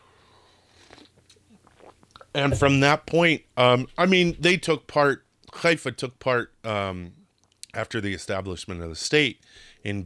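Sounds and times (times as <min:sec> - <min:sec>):
person sipping coffee: 0:00.6 - 0:02.7
speech: 0:02.3 - 0:10.0.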